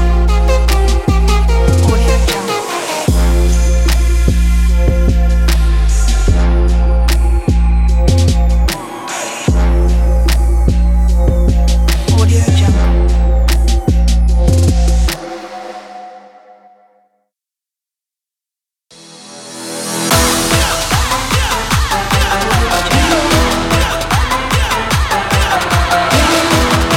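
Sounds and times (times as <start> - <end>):
trap beat: 0.0 - 15.8, 20.1 - 26.9.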